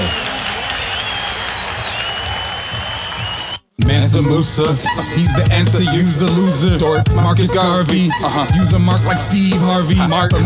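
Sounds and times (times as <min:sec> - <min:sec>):
crowd applause: 0:00.0 - 0:03.6
speech: 0:04.1 - 0:10.4.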